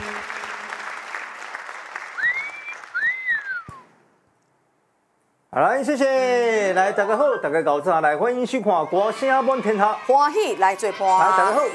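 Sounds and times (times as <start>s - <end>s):
audience clapping: 0.0s - 3.8s
speech: 5.6s - 11.7s.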